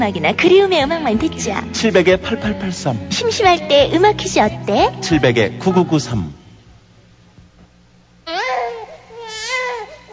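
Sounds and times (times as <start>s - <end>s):
speech: 0.0s - 6.4s
newborn baby crying: 4.7s - 5.9s, 8.3s - 10.1s.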